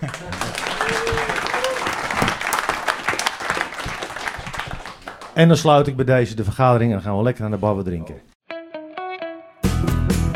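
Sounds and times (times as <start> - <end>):
audience applause: 0.0 - 5.4
speech: 5.4 - 8.3.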